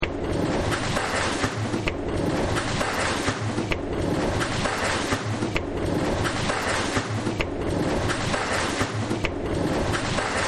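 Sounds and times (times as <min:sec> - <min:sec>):
factory noise: 0:00.0 - 0:10.4.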